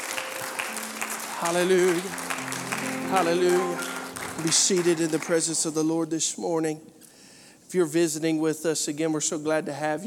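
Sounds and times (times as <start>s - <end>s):
audience hand clapping: 0.0s - 6.0s
speech: 1.4s - 2.3s, 3.1s - 7.0s, 7.7s - 10.0s.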